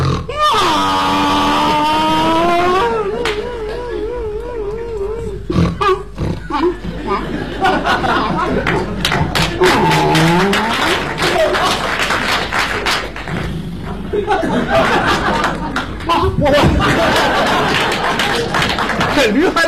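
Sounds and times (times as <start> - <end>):
person imitating donkey braying: 0.0 - 7.3, 9.6 - 11.0
laughter: 1.3 - 5.3, 6.3 - 19.6
crowd noise: 1.6 - 19.6.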